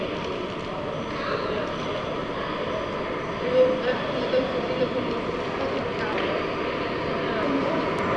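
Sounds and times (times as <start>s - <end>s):
São Bento metro station ambience: 0.0s - 8.1s.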